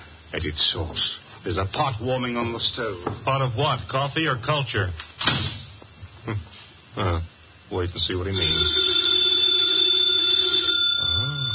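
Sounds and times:
speech: 0.3s - 5.5s, 6.3s - 9.1s
telephone ringing with a high-pitched electronic tone: 8.3s - 11.5s.

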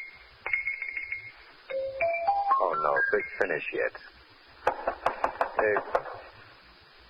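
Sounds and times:
xylophone played in rapid rolls: 0.6s - 3.4s
speech: 2.9s - 4.2s, 5.6s - 6.1s.

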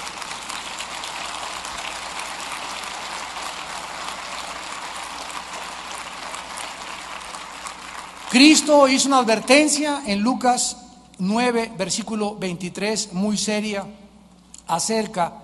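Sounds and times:
audience applause: 0.0s - 9.7s
speech: 8.3s - 14.0s, 14.7s - 15.4s.

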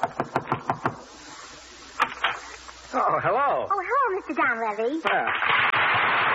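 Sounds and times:
knocking on a door: 0.0s - 1.0s
speech: 3.2s - 6.2s.

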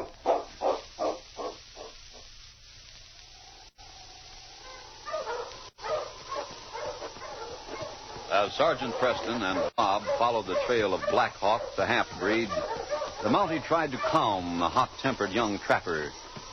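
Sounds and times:
dogs barking: 0.0s - 2.3s, 4.6s - 16.1s
dog whining: 4.6s - 13.4s
speech: 8.4s - 16.2s.

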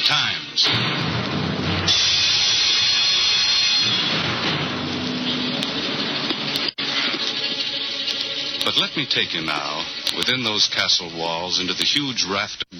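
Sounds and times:
raging storm: 0.6s - 6.2s
rain: 1.2s - 11.7s
speech: 8.7s - 12.7s.

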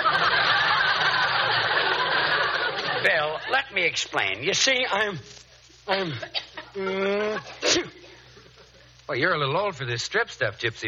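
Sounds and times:
laughter: 0.0s - 3.7s
speech: 3.0s - 8.0s, 9.1s - 10.8s
man with an allergy sneezing: 5.9s - 8.2s.

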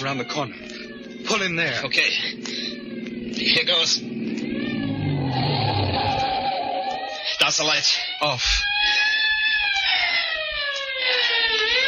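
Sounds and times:
speech: 0.0s - 2.6s, 3.4s - 4.1s, 7.5s - 9.1s
car driving along a road: 0.0s - 11.8s.

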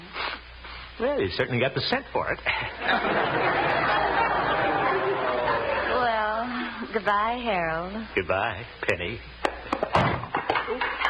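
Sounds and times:
speech: 1.0s - 4.1s, 6.9s - 9.5s
laughter: 2.5s - 6.4s
chair knocked over: 9.5s - 11.0s.

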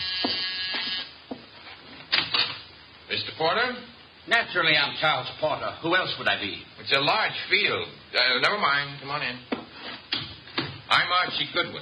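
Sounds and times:
door buzzer droning: 0.0s - 1.2s
rustling noise: 0.9s - 2.1s
speech: 3.4s - 9.5s, 10.9s - 11.7s.

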